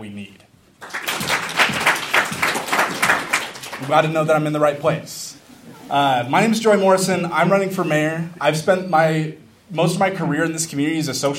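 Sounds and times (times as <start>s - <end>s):
speech: 0.0s - 0.5s, 3.8s - 5.2s, 5.9s - 11.3s
audience clapping at a Bozeman mayoral campaign event: 0.8s - 4.3s.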